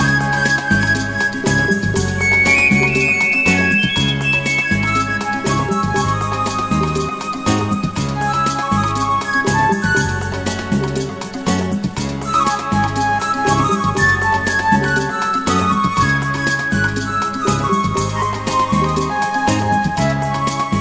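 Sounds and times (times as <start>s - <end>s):
guaguanco rumba percussion: 0.0s - 20.8s.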